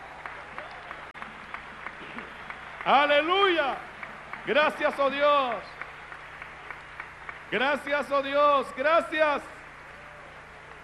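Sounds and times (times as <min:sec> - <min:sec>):
audience applauding: 0:00.0 - 0:08.6
speech: 0:02.8 - 0:05.8, 0:07.5 - 0:09.5.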